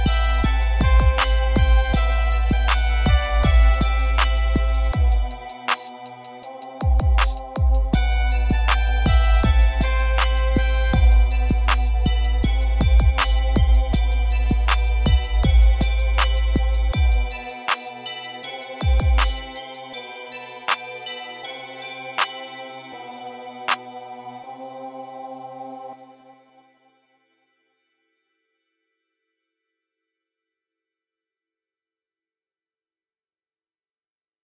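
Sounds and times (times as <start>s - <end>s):
deep trap beat: 0.0s - 20.0s.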